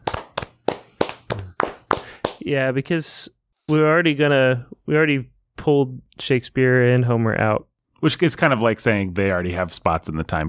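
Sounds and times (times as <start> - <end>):
hand clapping: 0.0 - 2.5
speech: 2.4 - 10.4.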